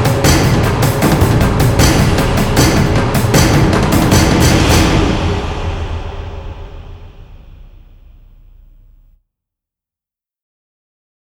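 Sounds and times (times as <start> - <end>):
drums: 0.0 - 8.7.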